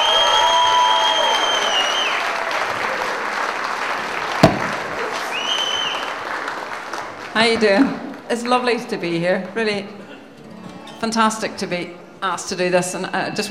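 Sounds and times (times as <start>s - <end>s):
audience applause welcoming a brother-and-sister folk act onto the stage: 0.0s - 8.3s
sharp knock: 4.4s - 4.8s
speech: 7.4s - 10.0s, 11.0s - 13.4s.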